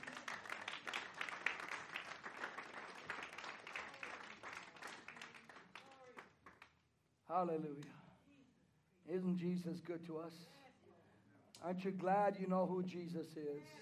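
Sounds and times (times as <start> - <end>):
audience clapping: 0.0 - 6.8
speech: 7.3 - 8.0, 9.1 - 10.6, 11.6 - 13.7.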